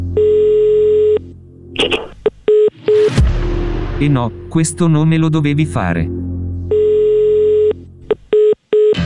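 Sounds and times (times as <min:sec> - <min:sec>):
long telephone tone while redialing: 0:00.2 - 0:01.2, 0:06.7 - 0:09.0
phone line noise: 0:00.2 - 0:03.0, 0:06.7 - 0:09.0
speech: 0:04.0 - 0:06.2.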